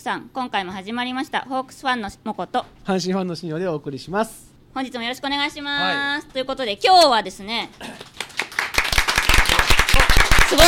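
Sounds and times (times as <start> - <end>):
speech: 0.0 - 8.1
applause sound effect: 8.0 - 10.6.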